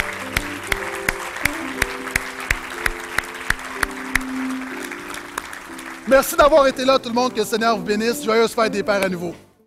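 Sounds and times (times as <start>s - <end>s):
audience applauding and cheering: 0.0s - 7.5s
speech: 6.1s - 9.4s.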